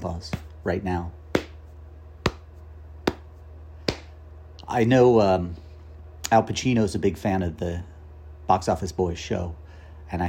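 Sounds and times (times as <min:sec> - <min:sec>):
speech: 0:00.0 - 0:01.2, 0:04.7 - 0:05.6, 0:06.3 - 0:07.9, 0:08.5 - 0:10.2
low steady hum: 0:00.0 - 0:10.2
hand slapping knee: 0:01.3 - 0:04.2.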